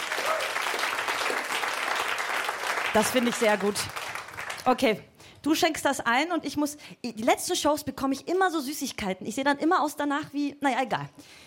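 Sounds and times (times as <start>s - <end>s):
live audience applause: 0.0s - 4.6s
speech: 2.9s - 11.4s.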